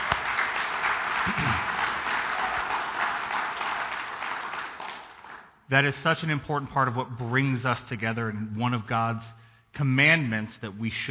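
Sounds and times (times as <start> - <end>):
audience applause: 0.0 - 5.5
speech: 1.3 - 1.7, 5.7 - 11.0.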